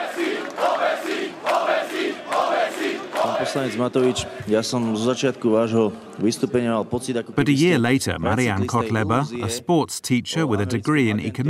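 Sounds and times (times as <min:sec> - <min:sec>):
rally crowd chanting: 0:00.0 - 0:05.2
speech: 0:03.4 - 0:11.4.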